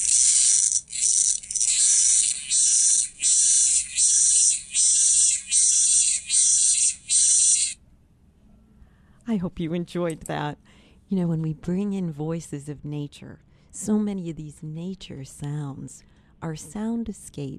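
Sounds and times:
locust raspy buzzing call: 0.0s - 7.8s
speech: 9.3s - 17.5s.

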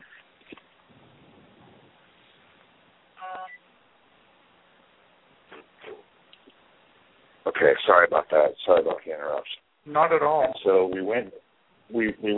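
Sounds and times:
phone call coming in: 3.2s - 3.6s
speech: 7.5s - 12.3s.

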